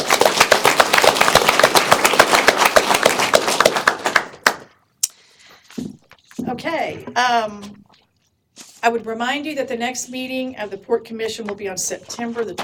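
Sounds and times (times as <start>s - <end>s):
audience round of applause: 0.0s - 4.7s
speech: 6.6s - 7.8s, 8.8s - 12.6s.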